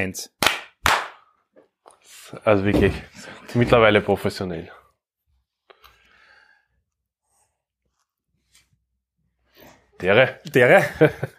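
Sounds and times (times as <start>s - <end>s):
speech: 0.0s - 0.4s, 2.3s - 4.8s, 10.0s - 11.3s
hand clapping: 0.4s - 1.3s
laughter: 10.8s - 11.3s.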